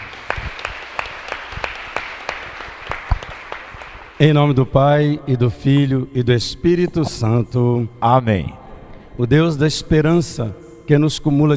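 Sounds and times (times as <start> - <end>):
audience applause: 0.0 - 4.2
speech: 4.2 - 8.6, 9.2 - 11.5.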